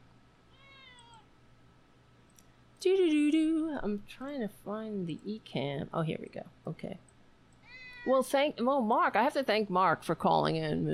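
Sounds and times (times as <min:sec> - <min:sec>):
low steady hum: 0:00.0 - 0:10.9
cat meowing: 0:00.5 - 0:01.3, 0:07.6 - 0:08.1
speech: 0:03.8 - 0:07.1, 0:08.0 - 0:10.9.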